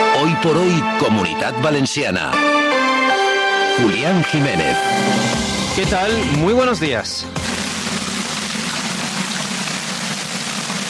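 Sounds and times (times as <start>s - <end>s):
speech: 0.4s - 2.9s, 3.8s - 7.5s
torrential rain falling: 7.4s - 10.8s.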